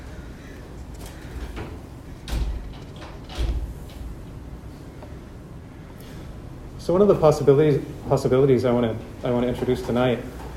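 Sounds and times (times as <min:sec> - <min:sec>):
wood-and-glass door rattling: 0:01.0 - 0:04.4
wood-and-glass door thudding knocks: 0:01.5 - 0:04.0
speech: 0:06.9 - 0:10.4.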